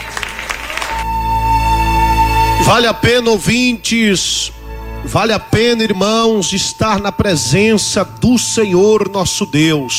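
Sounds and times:
applause in a church: 0.0 - 1.1
sustained musical tone: 0.9 - 9.9
speech: 2.7 - 9.9.

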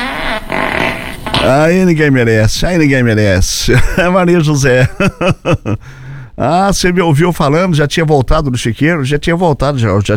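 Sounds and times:
loud buzzy fart under the blanket: 0.0 - 1.8
speech: 1.5 - 10.1
laughter: 3.7 - 5.8.

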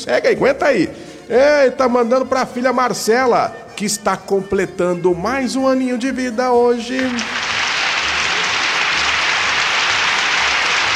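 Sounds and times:
speech: 0.1 - 7.4
applause: 7.0 - 10.9.

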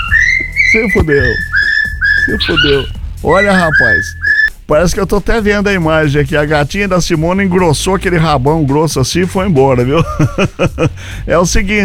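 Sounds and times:
cockatiel whistling: 0.0 - 4.6
speech: 0.7 - 1.5, 2.3 - 11.8
laughter: 9.4 - 11.2.

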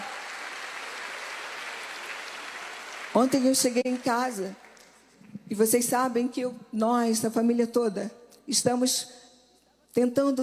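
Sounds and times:
congregation applauding during a church service: 0.0 - 5.3
speech: 3.2 - 4.6, 5.5 - 9.2, 10.0 - 10.4.

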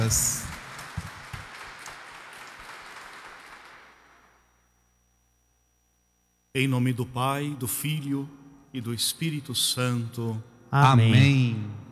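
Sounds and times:
speech: 0.0 - 0.4, 6.6 - 11.8
audience applauding: 0.0 - 4.4.

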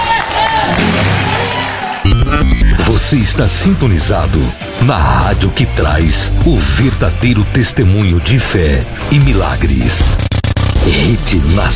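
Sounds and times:
church congregation applauding and cheering the name of Jesus: 0.0 - 2.2
speech: 3.1 - 10.2, 10.8 - 11.7.

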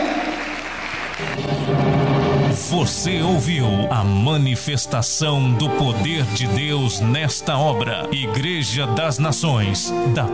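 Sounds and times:
voices cheering and calling out: 0.0 - 1.3
audience applause: 0.0 - 2.5
speech: 2.7 - 10.3.

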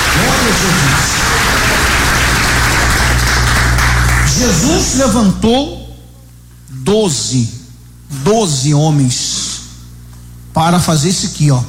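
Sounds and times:
applause: 0.0 - 4.8
speech: 4.4 - 5.8, 6.8 - 9.5, 10.6 - 11.6.

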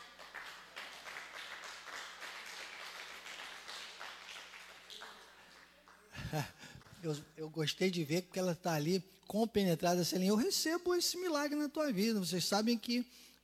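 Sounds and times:
large indoor crowd clapping: 0.0 - 7.0
speech: 6.3 - 13.3.

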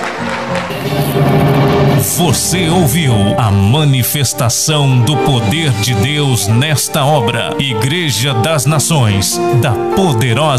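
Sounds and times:
audience applauding: 0.0 - 3.1
speech: 2.2 - 10.5.

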